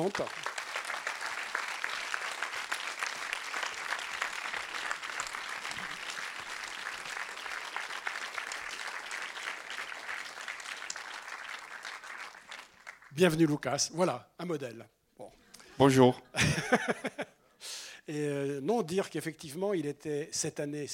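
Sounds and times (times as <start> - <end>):
speech: 0.0 - 0.4, 13.2 - 15.0, 15.8 - 17.2, 18.1 - 20.9
audience applause: 0.0 - 13.2
laughter: 16.4 - 17.4.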